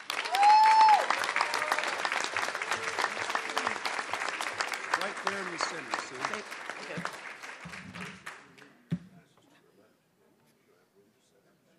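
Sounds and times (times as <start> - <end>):
audience applause welcoming a speaker: 0.0 - 8.6.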